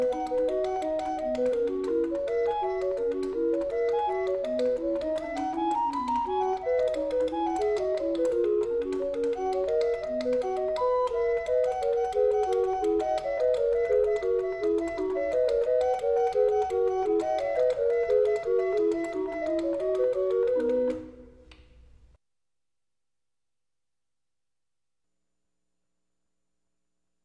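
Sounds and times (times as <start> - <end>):
organ clock: 0.0 - 21.1.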